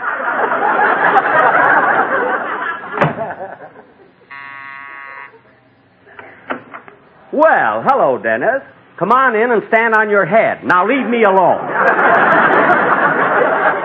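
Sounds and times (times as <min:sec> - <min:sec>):
laughter: 0:00.0 - 0:04.4, 0:11.4 - 0:13.8
doorbell ringing: 0:04.3 - 0:05.4
speech: 0:07.4 - 0:12.7.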